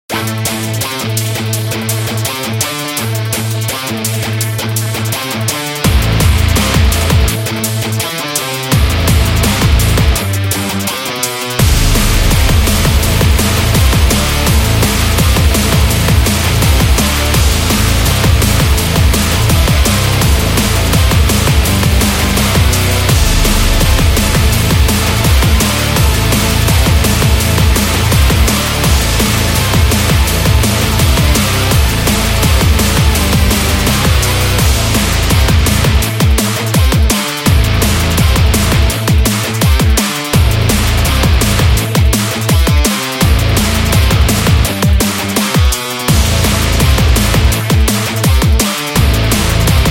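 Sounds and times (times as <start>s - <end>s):
full-speed metal music: 0.1s - 49.8s.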